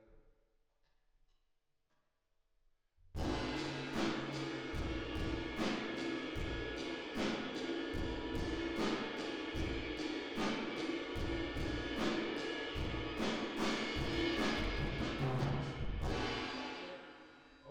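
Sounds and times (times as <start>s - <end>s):
drums with reverb: 3.2s - 17.6s.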